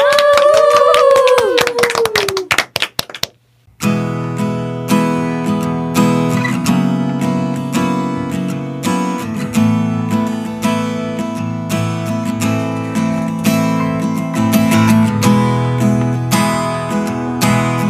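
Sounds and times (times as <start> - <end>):
audience applause: 0.0 - 3.4
steady guitar-led music: 3.7 - 17.8.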